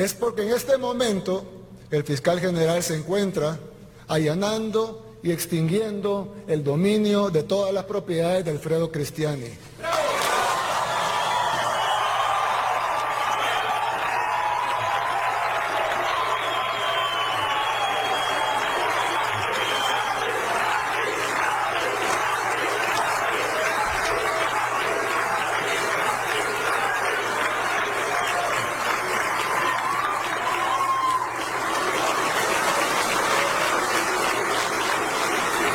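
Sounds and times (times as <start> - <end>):
speech: 0.0 - 9.9
crowd clapping: 9.8 - 35.7.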